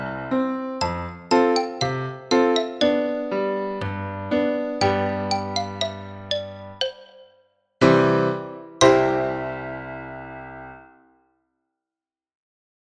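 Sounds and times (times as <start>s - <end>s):
piano: 0.0s - 11.3s
xylophone: 0.8s - 8.0s.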